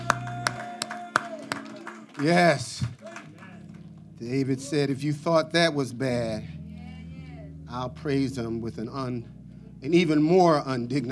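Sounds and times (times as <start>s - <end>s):
low musical hum: 0.0s - 0.7s, 3.5s - 11.1s
crowd clapping in unison: 0.0s - 4.1s
speech: 2.2s - 2.8s, 4.2s - 6.6s, 7.7s - 11.1s.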